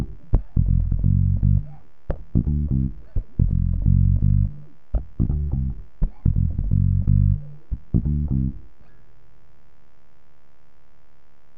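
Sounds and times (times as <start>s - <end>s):
funk bass line in G minor: 0.0s - 8.6s.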